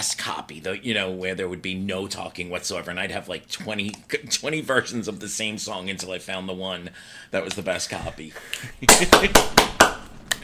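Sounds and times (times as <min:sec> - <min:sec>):
speech: 0:00.0 - 0:09.8
hands clapping: 0:08.5 - 0:10.4.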